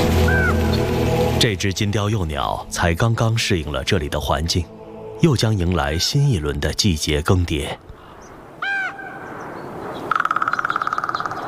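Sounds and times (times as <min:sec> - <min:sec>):
carrion crow calling: 0:00.2 - 0:00.8, 0:08.0 - 0:11.4
speech: 0:01.4 - 0:07.9.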